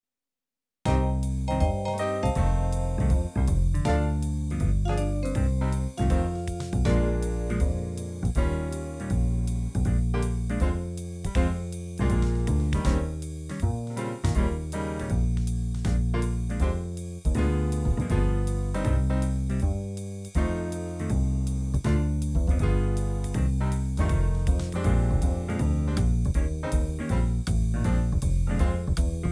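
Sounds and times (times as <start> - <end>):
blues music in B flat: 0.9 - 29.3.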